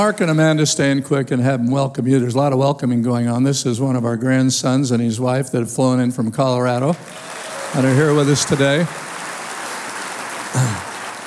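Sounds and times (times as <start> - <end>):
speech: 0.0 - 9.0
crowd clapping: 6.8 - 11.2.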